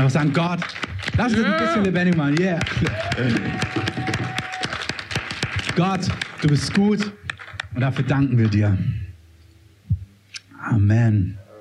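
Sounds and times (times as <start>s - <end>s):
speech: 0.0s - 3.8s, 5.8s - 7.2s, 7.8s - 9.0s, 10.6s - 11.4s
church congregation clapping: 0.0s - 8.6s.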